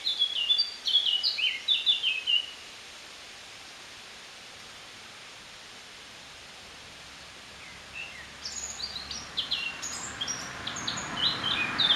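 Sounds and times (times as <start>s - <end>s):
Eurasian blackcap Sylvia atricapilla warbling song: 0.0s - 2.6s, 7.6s - 11.9s.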